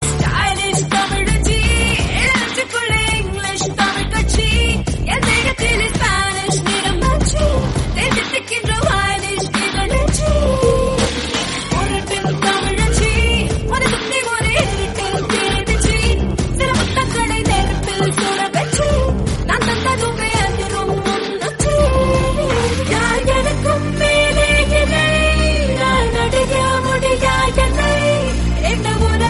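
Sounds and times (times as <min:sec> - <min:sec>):
Tamil song: 0:00.0 - 0:29.2.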